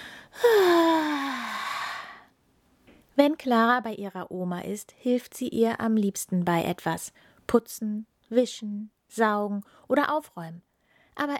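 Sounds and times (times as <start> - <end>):
long loud yawn: 0.3 - 2.3
speech: 3.2 - 11.3.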